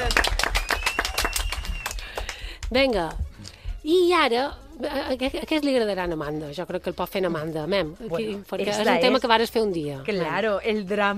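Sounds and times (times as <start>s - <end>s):
small group hand clapping: 0.0s - 3.6s
speech: 2.7s - 3.2s, 3.8s - 11.1s.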